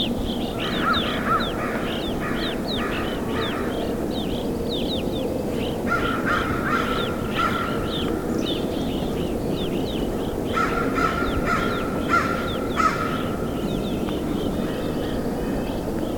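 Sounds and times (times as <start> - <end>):
Evening Grosbeak Hesperiphona vespertina Type 1 calling in BC: 0.0 - 15.9.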